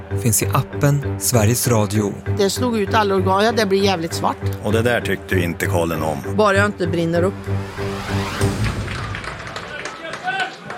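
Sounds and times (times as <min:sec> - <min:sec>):
speech: 0:00.2 - 0:08.2
small spontaneous applause at Strandvallen football stadium: 0:08.6 - 0:10.7.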